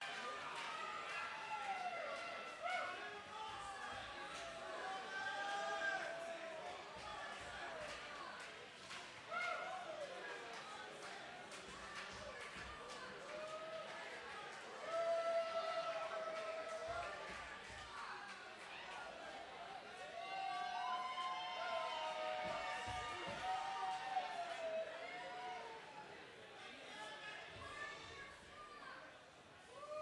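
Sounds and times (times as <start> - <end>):
crowd cheering for an encore: 0.0 - 30.0.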